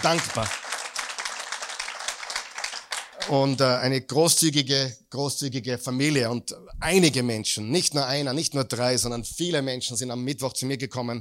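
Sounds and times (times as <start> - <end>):
speech: 0.0 - 0.6, 3.2 - 11.1
audience applause: 0.0 - 3.7.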